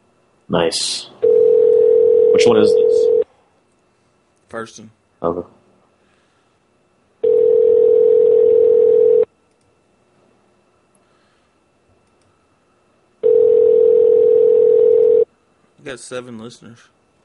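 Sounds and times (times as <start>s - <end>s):
speech: 0.5s - 1.1s, 2.4s - 3.1s, 4.5s - 5.6s, 15.9s - 17.0s
telephone tone on a call line: 1.2s - 3.2s, 7.2s - 9.3s, 13.2s - 15.3s.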